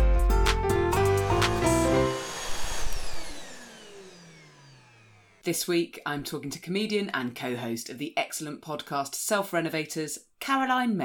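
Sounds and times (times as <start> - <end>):
vacuum cleaner running: 1.0 - 5.5
speech: 5.5 - 11.0.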